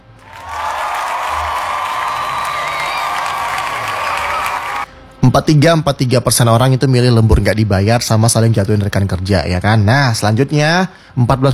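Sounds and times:
applause: 0.1s - 4.9s
speech: 5.3s - 11.5s.

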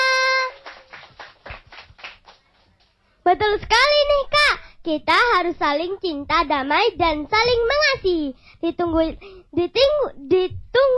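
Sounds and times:
applause: 0.0s - 3.0s
speech: 3.3s - 10.9s.

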